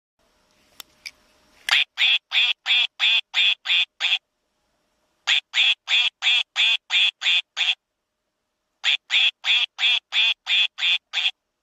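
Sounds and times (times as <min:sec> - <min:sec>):
duck quacking: 0:01.7 - 0:04.2, 0:05.3 - 0:07.8, 0:08.8 - 0:11.4.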